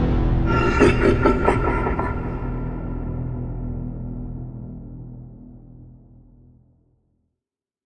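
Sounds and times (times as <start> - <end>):
apocalyptic ambience: 0.2 - 4.5.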